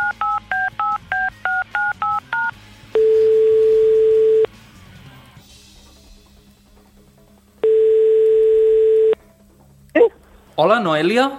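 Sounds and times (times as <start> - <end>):
telephone ringing tones: 0.0 - 4.5, 7.6 - 9.2
speech: 10.6 - 11.3.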